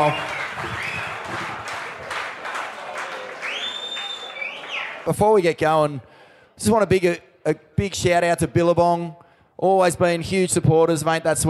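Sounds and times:
speech: 0.0s - 0.3s, 5.0s - 11.4s
audience applause: 0.0s - 5.1s.

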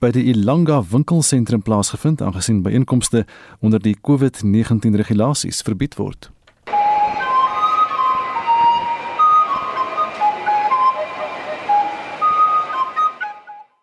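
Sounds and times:
speech: 0.0s - 6.4s
flute playing in shopping centre: 6.7s - 13.8s.

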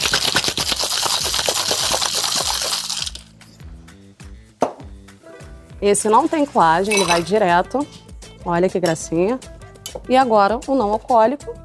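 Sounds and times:
ice rattling in a cocktail shaker: 0.0s - 3.6s, 6.8s - 7.3s
faint music: 0.1s - 11.6s
speech: 5.8s - 11.6s.

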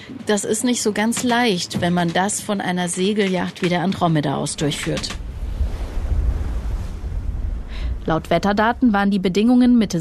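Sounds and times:
speech: 0.1s - 5.2s, 8.1s - 9.9s
wind buffeting the microphone: 4.3s - 9.9s
heavy sea surf rolling and churning: 4.4s - 9.9s.

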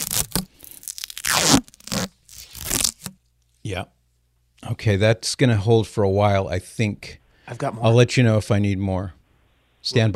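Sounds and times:
duct tape ripped from the roll and pressed down: 0.0s - 3.2s
speech: 3.6s - 4.0s, 4.6s - 9.2s, 9.8s - 10.1s.

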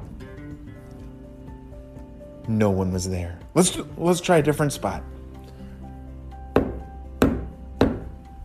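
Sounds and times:
speech: 2.5s - 5.2s
knocks on a tree trunk: 6.6s - 8.1s.

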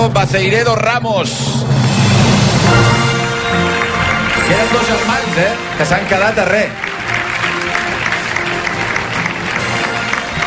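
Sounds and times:
speech: 0.2s - 1.9s, 4.5s - 6.9s
audience applause: 2.6s - 10.4s.

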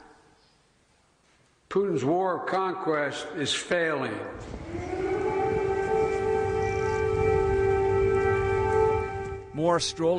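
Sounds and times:
speech: 1.7s - 5.0s, 9.6s - 10.1s
air raid siren wailing: 4.3s - 10.1s.

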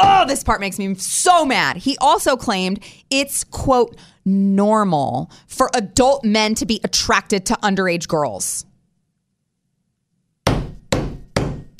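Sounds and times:
speech: 0.3s - 8.7s
head banging against a wall: 10.4s - 11.7s.

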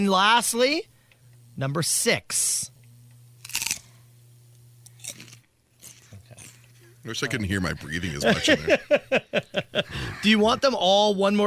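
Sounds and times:
speech: 0.0s - 0.9s, 1.6s - 2.7s, 7.0s - 11.4s
teeth biting into a crisp raw vegetable: 3.4s - 3.9s, 4.8s - 6.8s
laughter: 7.1s - 10.7s.

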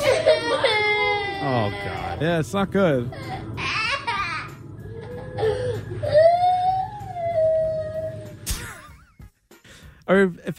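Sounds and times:
crying and whimpering: 0.0s - 2.2s, 3.0s - 8.4s
speech: 1.7s - 3.2s, 10.1s - 10.5s.

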